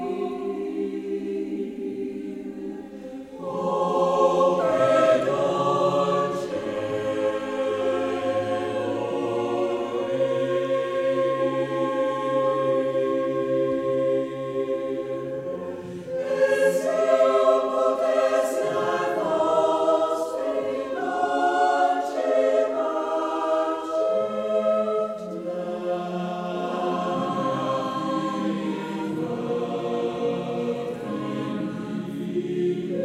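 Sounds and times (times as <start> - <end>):
choir singing: 0.0 - 33.0.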